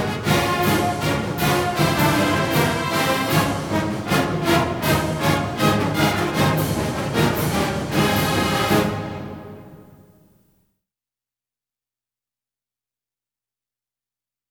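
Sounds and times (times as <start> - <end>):
fanfare: 0.0 - 9.9.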